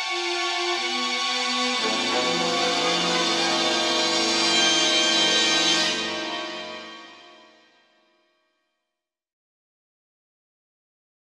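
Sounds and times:
old horror orchestral music: 0.1 - 7.6.

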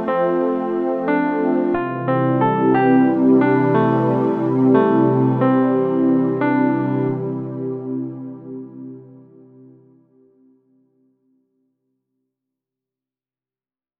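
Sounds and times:
somber underlying instrumental music: 0.0 - 10.1.

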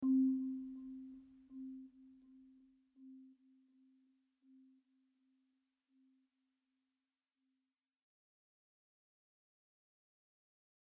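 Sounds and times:
marimba: 0.0 - 3.3.

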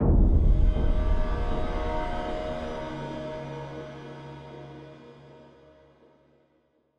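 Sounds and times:
pain music stinger: 0.0 - 5.3.

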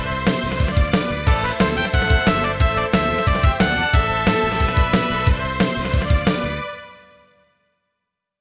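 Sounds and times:
cave boss game music: 0.0 - 6.7.

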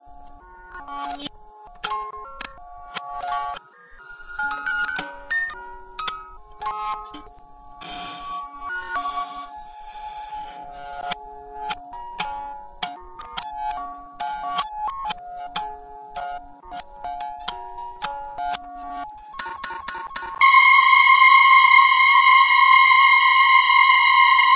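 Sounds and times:
glitched clock: 20.4 - 24.5.

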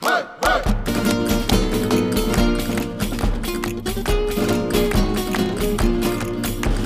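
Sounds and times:
shooter world music: 0.0 - 6.8.

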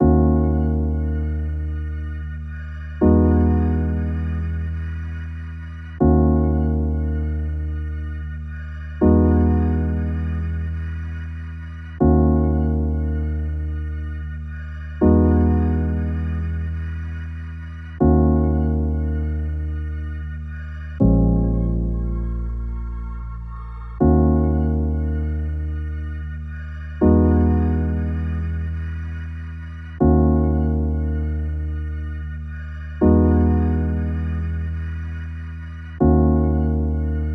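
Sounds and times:
keyboard pads: 0.0 - 37.3.

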